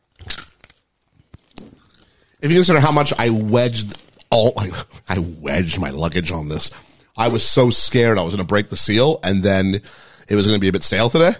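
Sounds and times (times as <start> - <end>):
potato chips being bitten and chewed: 0.1 - 2.1
speech: 2.4 - 11.3.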